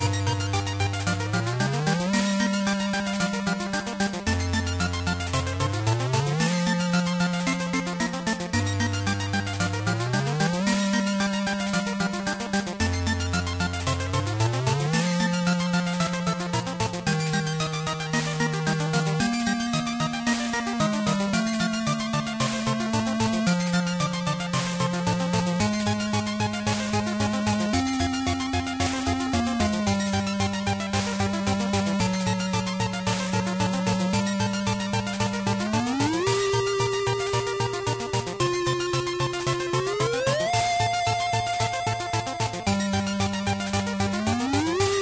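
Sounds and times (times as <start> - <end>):
music: 0.0 - 45.0.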